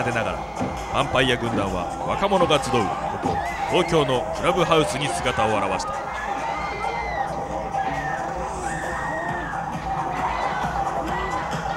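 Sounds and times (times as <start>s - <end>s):
speech: 0.0s - 6.2s
audience screaming on a club dance floor: 0.0s - 11.7s.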